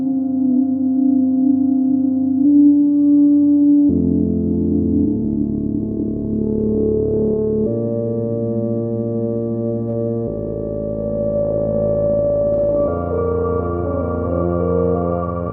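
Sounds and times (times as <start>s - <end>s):
droning Moog Subharmonicon synthesizer on tape: 0.0s - 15.5s.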